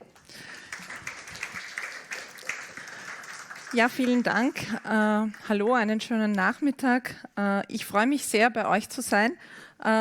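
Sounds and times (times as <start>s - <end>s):
audience applause: 0.2s - 5.8s
speech: 3.7s - 9.9s.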